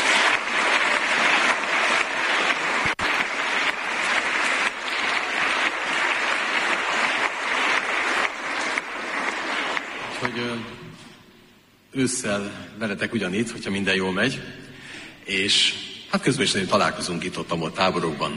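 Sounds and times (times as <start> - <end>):
audience applause: 0.0 - 10.8
speech: 12.0 - 14.6, 15.3 - 18.3.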